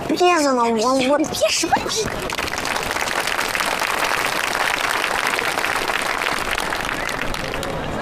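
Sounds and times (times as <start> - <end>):
speech: 0.2 - 2.5
crowd applause after a speech: 1.7 - 7.9.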